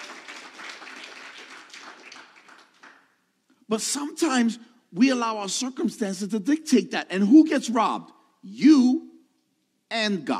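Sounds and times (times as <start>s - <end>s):
audience applause: 0.0s - 3.1s
speech: 3.7s - 9.1s, 9.9s - 10.3s.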